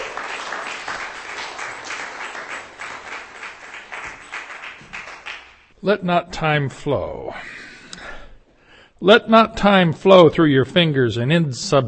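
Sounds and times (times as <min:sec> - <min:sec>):
audience applause welcoming a speaker at a reading: 0:00.0 - 0:05.6
speech: 0:05.8 - 0:07.7, 0:09.0 - 0:11.8.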